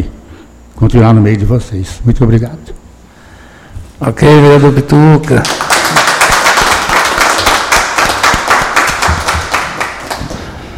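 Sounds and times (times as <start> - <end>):
speech: 0.8 - 2.8, 4.0 - 5.7
round of applause: 5.2 - 10.5.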